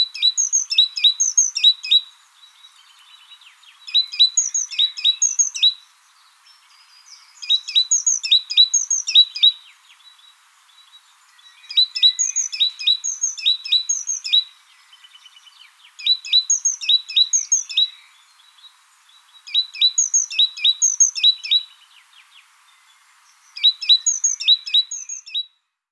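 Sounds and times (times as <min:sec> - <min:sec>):
great tit singing: 0:00.0 - 0:25.5.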